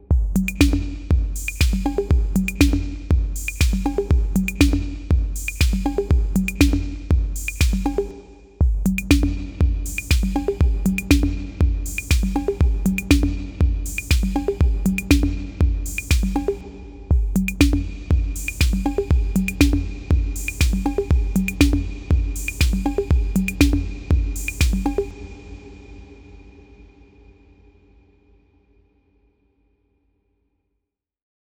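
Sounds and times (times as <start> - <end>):
drum loop: 0.0 - 25.1.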